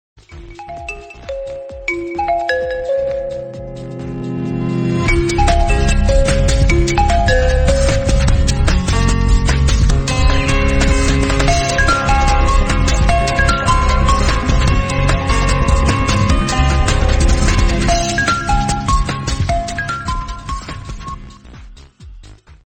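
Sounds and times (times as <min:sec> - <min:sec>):
Oppo Reno11 Pro ringtone without lyrics: 0:00.2 - 0:21.6.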